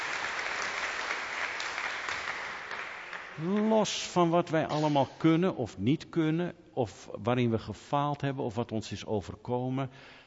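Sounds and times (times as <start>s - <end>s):
audience applause: 0.0s - 3.7s
speech: 3.4s - 10.2s.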